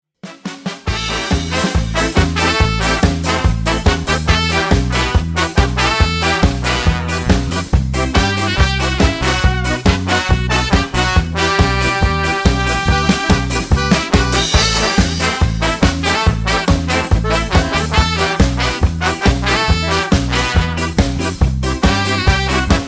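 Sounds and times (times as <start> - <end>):
instrumental music: 0.2 - 22.8.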